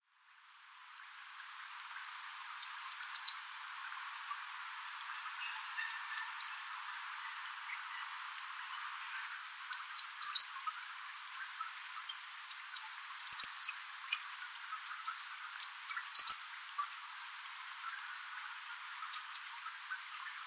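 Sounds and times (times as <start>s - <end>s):
hiss: 0.0s - 20.4s
Eurasian blue tit calls: 2.6s - 4.0s, 5.5s - 7.1s, 9.2s - 16.9s, 18.4s - 20.0s.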